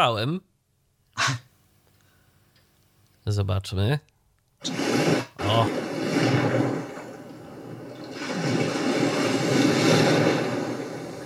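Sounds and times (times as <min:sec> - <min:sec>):
speech: 0:00.0 - 0:00.5, 0:01.2 - 0:01.5, 0:03.2 - 0:06.6
sea waves from a relaxation sound player: 0:04.6 - 0:11.2.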